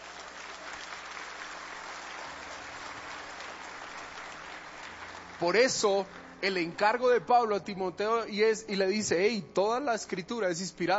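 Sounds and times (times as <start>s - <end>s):
audience applause: 0.0s - 6.9s
speech: 5.4s - 10.9s.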